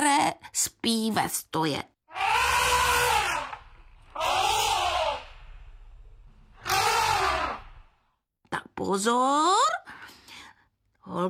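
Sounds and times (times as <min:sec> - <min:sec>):
speech: 0:00.6 - 0:01.9, 0:08.8 - 0:09.8, 0:11.1 - 0:11.2
elephant trumpeting: 0:02.1 - 0:08.0
low rumble: 0:03.5 - 0:08.0.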